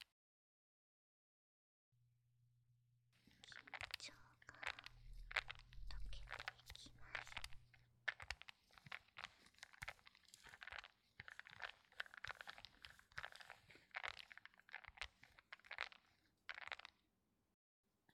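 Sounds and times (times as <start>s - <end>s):
power stone beads rubbing in ASMR massage: 3.3s - 16.9s.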